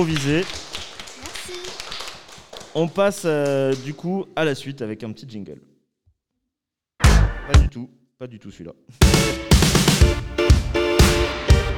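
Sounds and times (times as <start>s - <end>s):
speech: 0.0s - 0.7s, 2.8s - 5.7s, 7.5s - 10.8s
audience applause: 0.0s - 4.1s.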